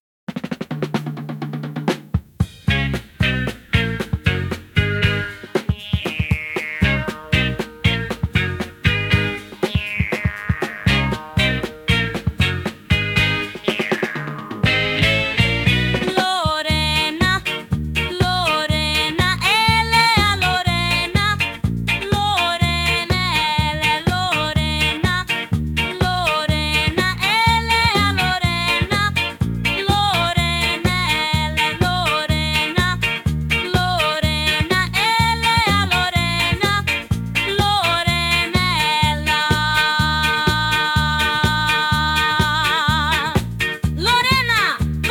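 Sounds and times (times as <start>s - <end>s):
reggae version: 0.4s - 45.0s.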